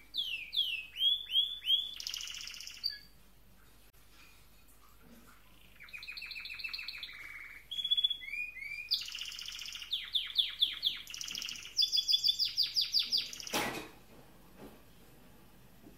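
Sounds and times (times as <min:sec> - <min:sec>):
canary singing: 0:00.0 - 0:03.2, 0:05.5 - 0:13.6.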